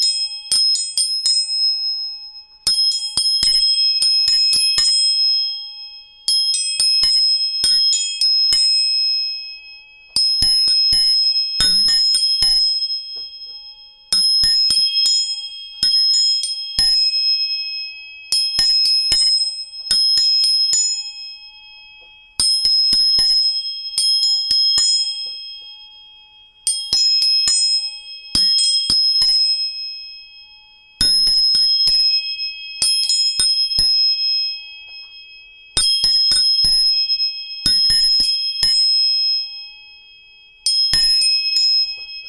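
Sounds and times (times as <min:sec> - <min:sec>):
tuning fork pure tones ringing: 0:00.0 - 0:42.2
sharp metallic tap on tuning fork strike: 0:10.0 - 0:13.8, 0:21.8 - 0:22.3, 0:24.8 - 0:25.8, 0:34.8 - 0:36.8, 0:41.0 - 0:42.2.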